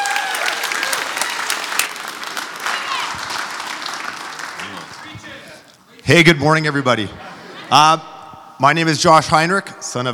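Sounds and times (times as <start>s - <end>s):
church congregation applauding the morning's preachers: 0.0s - 5.5s
speech: 6.1s - 10.1s
laughter: 7.0s - 8.1s.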